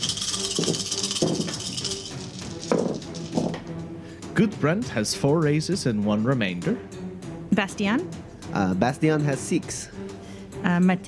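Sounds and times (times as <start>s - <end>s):
dice being rolled: 0.0s - 3.6s
speech: 4.4s - 7.0s, 7.6s - 10.0s, 10.6s - 11.0s.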